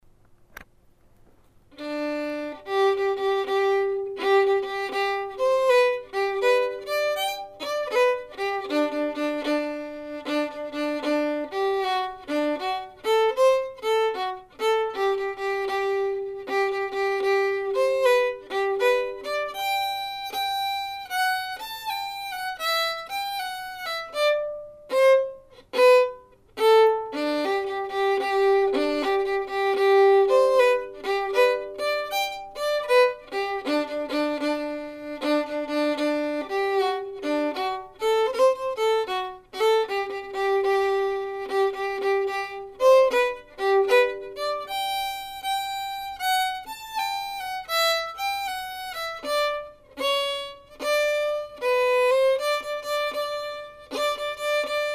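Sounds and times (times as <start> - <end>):
fiddle playing a hornpipe: 1.7 - 54.9.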